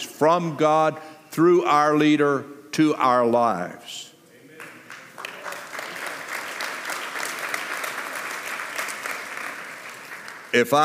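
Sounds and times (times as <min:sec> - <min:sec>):
speech: 0:00.2 - 0:04.0, 0:10.5 - 0:10.8
golf clap applause: 0:04.6 - 0:10.8.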